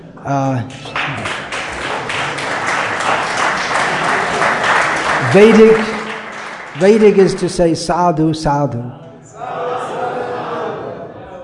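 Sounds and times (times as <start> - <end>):
speech: 0.2 - 1.0, 5.3 - 5.9, 6.8 - 9.0
audience clapping: 0.7 - 7.7.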